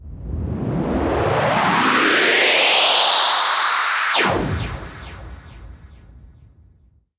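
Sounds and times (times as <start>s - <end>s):
medium sweeps: 0.9s - 5.8s.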